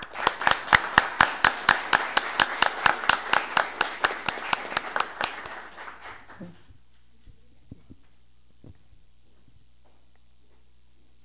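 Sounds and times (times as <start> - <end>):
rhythmic hand clapping: 0.0 - 6.5.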